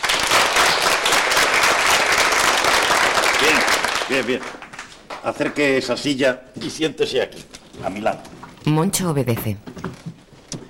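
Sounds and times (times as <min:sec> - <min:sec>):
classroom of pupils clapping for a new classmate: 0:00.0 - 0:06.1
speech: 0:04.1 - 0:04.6, 0:05.2 - 0:09.8.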